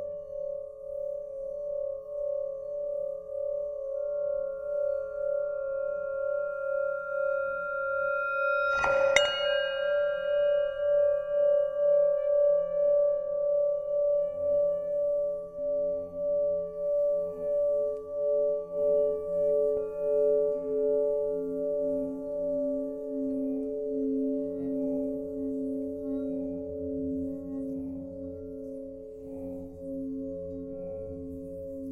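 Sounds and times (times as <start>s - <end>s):
singing bowl ringing as it is rubbed: 0.0s - 28.6s
singing bowl strike: 5.5s - 14.5s.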